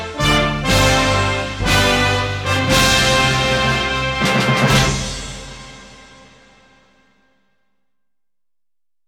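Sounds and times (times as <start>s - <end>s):
brass band playing an anthem: 0.0s - 7.0s.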